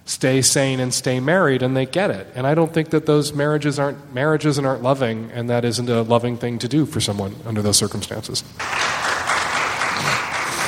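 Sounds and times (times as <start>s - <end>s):
speech: 0.2s - 9.1s
audience clapping: 8.6s - 10.6s.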